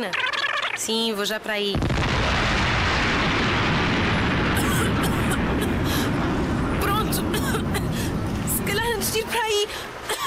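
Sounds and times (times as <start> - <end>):
speech: 0.0 - 2.6
crackling bursts of debris-like noise: 1.7 - 10.1
explosion sound effect roar: 1.8 - 9.2.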